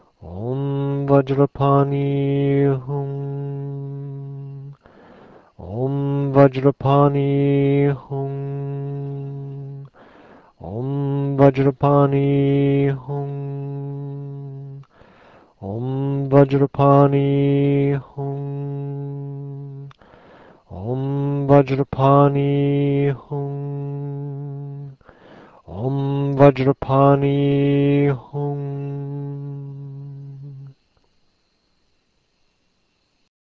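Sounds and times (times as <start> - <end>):
person chanting a mantra: 0.0 - 30.8.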